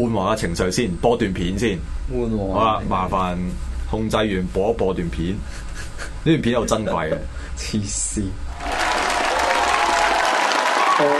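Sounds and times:
speech: 0.0 - 8.4
faint tonal hum: 0.0 - 8.6
crowd clapping: 8.5 - 11.1.

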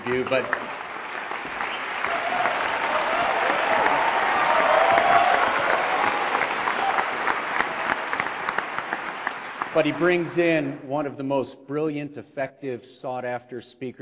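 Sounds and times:
audience applause for a priest hosting the event: 0.0 - 10.5
speech: 0.1 - 0.7, 9.8 - 14.0.

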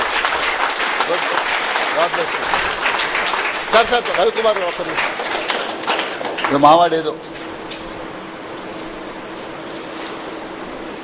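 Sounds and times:
audience clapping: 0.0 - 7.5
speech: 2.0 - 2.9, 3.7 - 5.3, 6.5 - 7.4.

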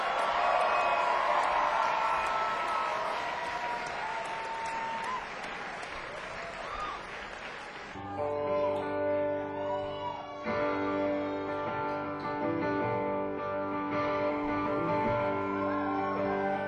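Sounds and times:
whoops and cheers: 0.0 - 7.3, 7.9 - 12.0, 15.0 - 16.6
audience applause for a band: 0.0 - 8.8, 14.7 - 16.6
music: 8.0 - 16.6.

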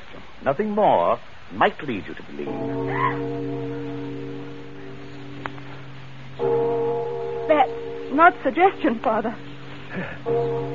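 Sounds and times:
speech: 0.4 - 3.6, 8.2 - 10.5
church bell ringing in a belfry: 2.4 - 10.7.

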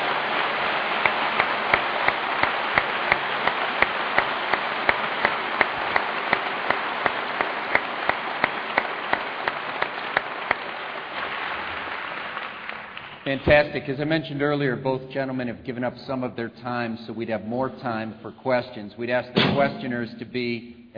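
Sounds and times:
audience applause: 0.0 - 13.4
speech: 13.3 - 20.9.

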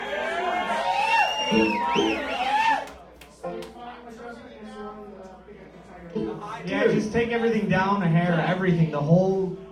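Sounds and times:
audience cheering and whooping for a bass player at a live music show: 0.0 - 3.0
speech: 1.5 - 2.3, 7.1 - 9.6.

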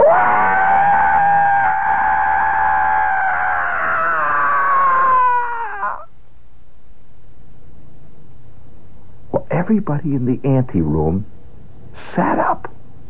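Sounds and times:
person imitating a long loud scream: 0.0 - 6.1
speech: 9.7 - 11.4, 12.0 - 12.5.

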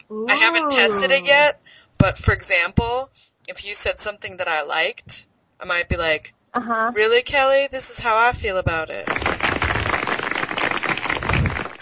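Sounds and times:
speech: 0.1 - 9.5
crackling applause sound effect: 9.0 - 11.8.

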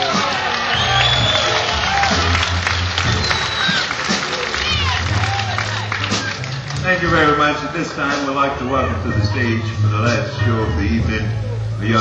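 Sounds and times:
audience applause: 0.0 - 8.5
speech: 7.0 - 11.9.

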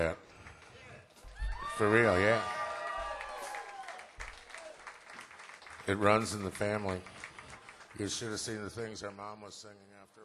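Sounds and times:
speech: 0.0 - 0.2, 1.8 - 2.6, 5.9 - 7.1, 7.9 - 10.2
whoops and cheering voices: 1.3 - 4.9
audience applause: 1.4 - 8.8.

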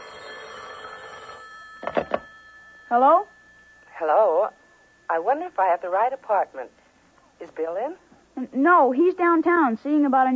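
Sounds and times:
telephone bell ringing: 0.0 - 6.2
speech: 2.9 - 3.3, 4.0 - 6.8, 7.4 - 10.3.

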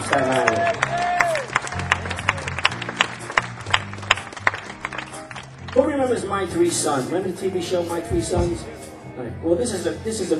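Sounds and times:
round of applause: 0.0 - 6.2
speech: 0.1 - 0.7, 6.1 - 10.3.

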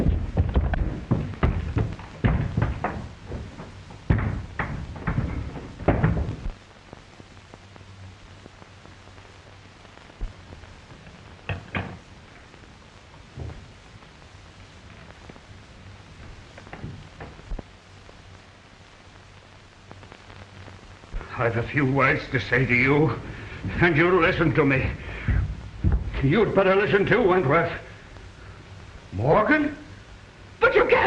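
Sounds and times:
door being tried and rattled: 0.0 - 6.5
clicks and thumps: 0.0 - 6.6, 11.4 - 12.2, 13.3 - 13.8, 16.2 - 17.7, 24.8 - 26.5
speech: 21.4 - 25.0, 26.2 - 27.8, 29.2 - 29.8.

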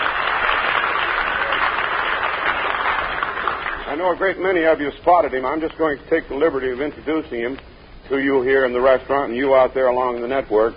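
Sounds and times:
studio audience cheering and applauding: 0.0 - 3.9
speech: 4.0 - 10.7.

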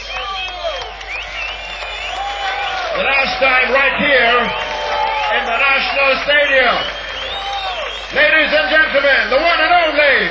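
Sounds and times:
stadium crowd applauding a performer: 0.0 - 10.2
speech: 3.0 - 4.7, 5.3 - 7.0, 8.1 - 10.2.

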